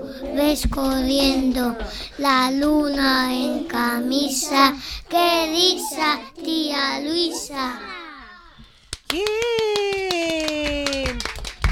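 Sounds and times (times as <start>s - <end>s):
speech: 0.2s - 8.0s, 9.1s - 10.6s
children clapping hands: 8.7s - 11.7s.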